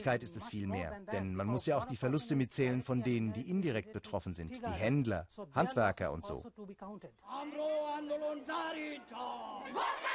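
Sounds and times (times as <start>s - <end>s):
speech: 0.0s - 10.1s
street protest crowd chanting in unison: 7.5s - 10.1s.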